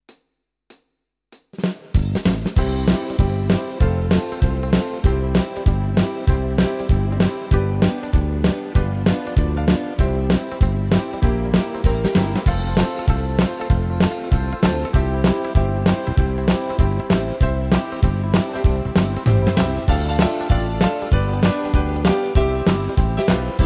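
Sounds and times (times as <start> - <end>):
Tyros2 keyboard shuffle rhythm: 0.0 - 23.6.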